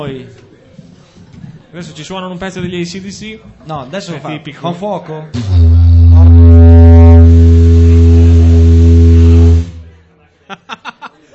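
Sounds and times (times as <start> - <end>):
speech: 0.0 - 0.5, 1.7 - 5.8
steamboat horn arriving from Cesenatico: 5.4 - 10.0
laughter: 10.4 - 11.3.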